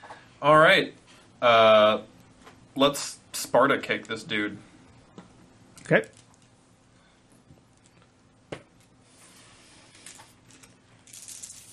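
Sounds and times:
speech: 0.4s - 2.1s, 2.8s - 4.7s, 5.9s - 6.2s
dice rolled during a Deadlands tabletop role-playing game: 10.0s - 11.7s.

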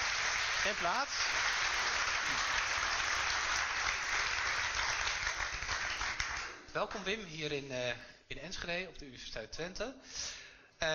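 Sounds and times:
audience applauding at the University of Twente in Enschede: 0.0s - 6.6s
speech: 0.6s - 1.5s, 6.8s - 10.9s.

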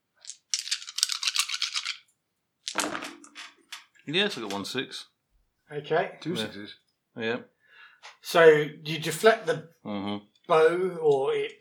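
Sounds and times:
dice rattling in a steady clicking shake: 0.2s - 3.4s
dice clattering and tumbling across a hard surface: 0.2s - 3.9s
speech: 4.1s - 5.1s, 5.7s - 7.6s, 8.2s - 11.5s.

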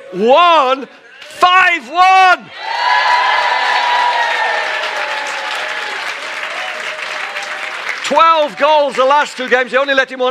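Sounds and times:
speech: 0.1s - 3.5s, 8.1s - 10.2s
audience applauding: 2.8s - 10.2s.

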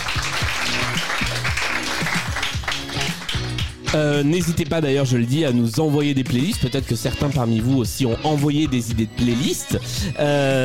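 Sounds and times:
audience applause: 0.0s - 4.0s
speech: 3.9s - 10.6s.

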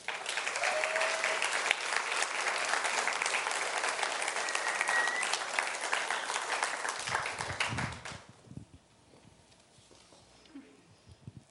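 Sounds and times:
audience applause: 0.0s - 8.2s.

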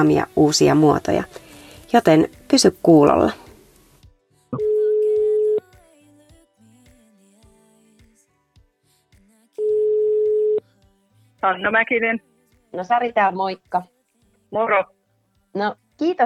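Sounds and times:
speech: 0.0s - 3.4s, 11.4s - 13.9s, 14.5s - 15.0s, 15.6s - 16.2s
ringback tone of an outgoing telephone call: 4.6s - 5.6s, 9.6s - 10.6s.

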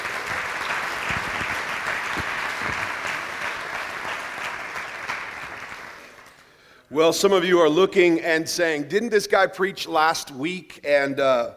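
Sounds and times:
church congregation in Tempe applauding a guest preacher: 0.0s - 6.8s
speech: 7.0s - 11.5s.

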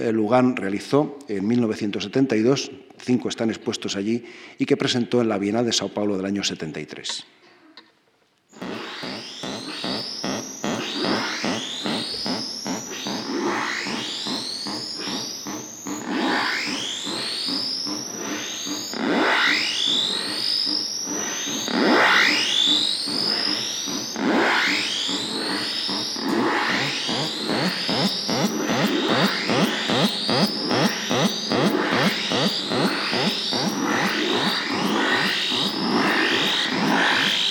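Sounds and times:
speech: 0.0s - 7.4s
sound art piece with sounding water faucets: 8.6s - 24.2s, 24.9s - 37.5s
buzzing distorted drone: 8.6s - 37.5s
upward-sweeping whistles: 8.6s - 37.5s.

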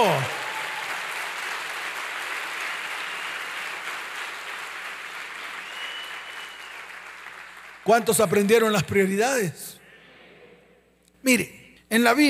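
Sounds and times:
speech: 0.0s - 0.4s, 7.9s - 9.8s, 11.2s - 12.2s
audience applause: 0.0s - 8.1s.

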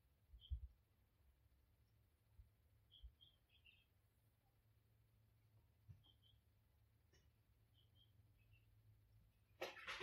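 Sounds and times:
birds calling in a garden: 0.0s - 9.6s.

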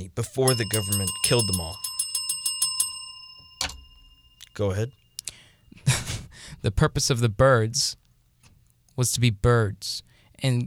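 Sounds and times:
speech: 0.0s - 1.9s, 4.6s - 5.0s, 6.6s - 8.0s, 9.0s - 10.6s
bell ringing: 0.0s - 5.5s.

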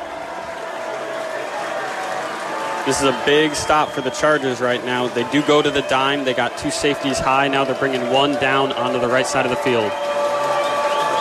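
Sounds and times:
stadium crowd roaring and cheering: 0.0s - 11.1s
speech: 2.8s - 10.2s.

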